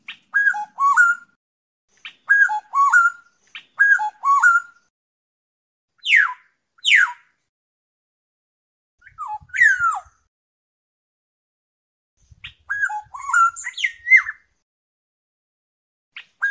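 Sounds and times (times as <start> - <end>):
black-naped oriole fluting whistles: 0.3 - 1.4, 2.0 - 4.9, 6.0 - 7.2, 9.0 - 10.2, 12.4 - 14.5, 16.2 - 16.5.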